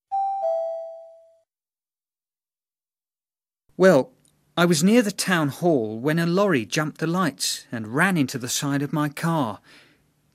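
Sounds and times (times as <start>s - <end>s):
two-note electronic chime prompt tone: 0.1s - 1.4s
speech: 3.8s - 10.3s.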